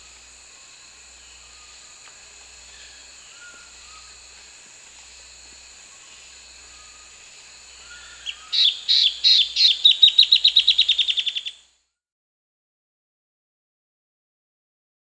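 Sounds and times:
Striated Antbird Drymophila devillei calling in Peru: 2.6s - 4.5s, 5.9s - 11.6s.

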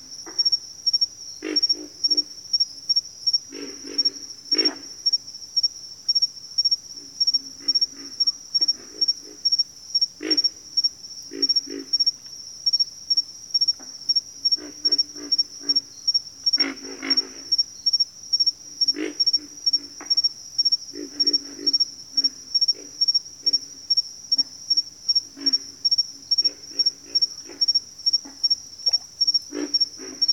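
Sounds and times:
continuous pulsed insect trill: 0.0s - 30.3s
pig frogs grunting: 1.4s - 2.4s, 3.3s - 5.1s, 7.0s - 12.2s, 13.7s - 18.0s, 18.6s - 30.3s.

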